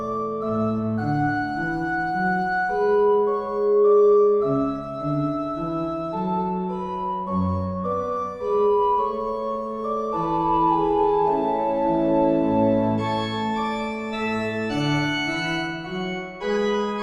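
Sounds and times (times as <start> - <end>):
organ playing a minuet in A major: 0.0 - 17.0.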